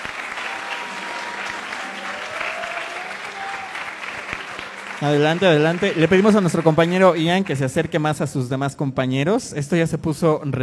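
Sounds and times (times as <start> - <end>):
applause: 0.0 - 8.4
speech: 5.0 - 10.6.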